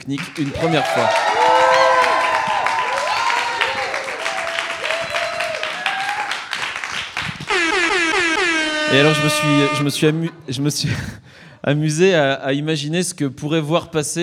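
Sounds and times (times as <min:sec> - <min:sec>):
speech: 0:00.0 - 0:01.3, 0:08.9 - 0:14.2
audience applause: 0:00.0 - 0:07.8.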